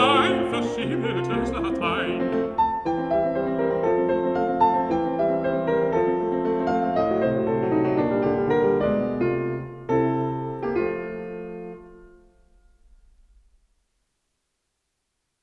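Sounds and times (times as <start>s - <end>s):
person singing: 0.0s - 2.5s
piano: 0.0s - 13.8s.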